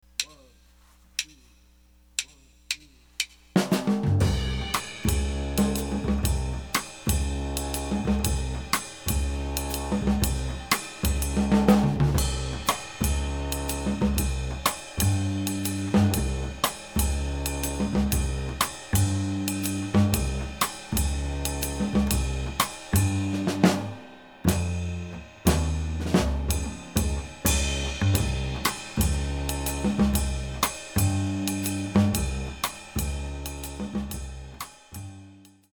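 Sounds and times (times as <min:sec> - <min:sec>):
bass drums: 0:02.2 - 0:35.7.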